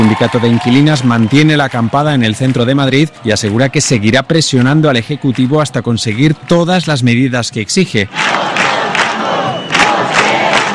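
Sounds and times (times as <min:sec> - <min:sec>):
speech: 0:00.1 - 0:08.7
large protest crowd chanting slogans in unison at an assembly: 0:08.1 - 0:10.7.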